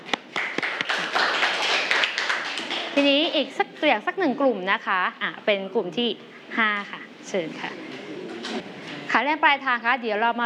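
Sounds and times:
classroom applause for a student group's representative: 0.1s - 3.0s
speech: 3.0s - 10.4s.

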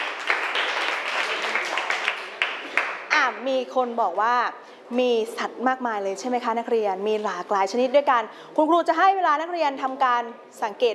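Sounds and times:
crowd of students clapping hands: 0.0s - 3.1s
speech: 3.4s - 10.9s.

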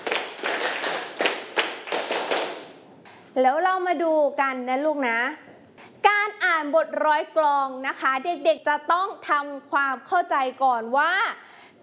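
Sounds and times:
hands clapping: 0.0s - 3.2s
speech: 3.4s - 5.4s, 6.0s - 11.8s.

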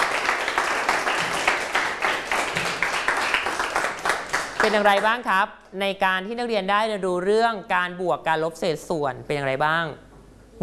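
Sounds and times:
classroom applause: 0.0s - 5.2s
speech: 4.6s - 10.6s.

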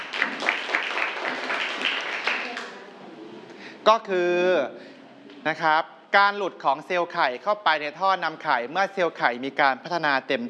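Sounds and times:
classroom of students clapping: 0.0s - 2.8s
speech: 3.9s - 10.4s.

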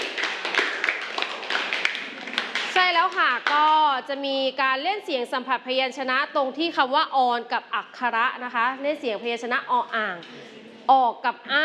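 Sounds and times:
clapping for a group: 0.0s - 3.7s
speech: 3.1s - 11.6s.

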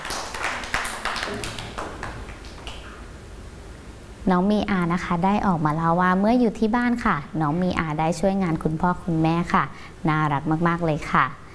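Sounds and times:
children clapping for a classmate: 0.0s - 3.0s
speech: 4.3s - 11.4s.

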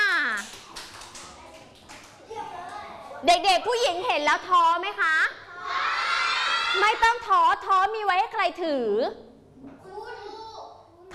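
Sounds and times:
children clapping hands: 0.2s - 2.8s
speech: 3.2s - 5.4s, 6.8s - 9.2s.

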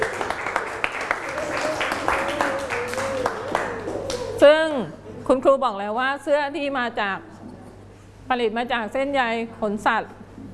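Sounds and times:
children clapping for a classmate: 0.0s - 4.4s
speech: 4.4s - 7.3s, 8.3s - 10.2s.

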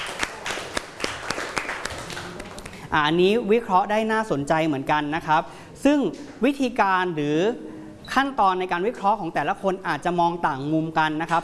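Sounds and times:
classroom applause: 0.0s - 2.8s
speech: 2.9s - 11.4s.

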